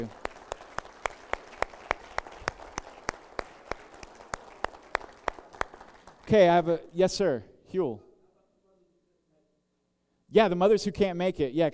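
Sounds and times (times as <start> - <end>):
speech: 0.0 - 0.2, 6.3 - 8.1, 10.3 - 11.7
audience clapping: 0.0 - 6.7.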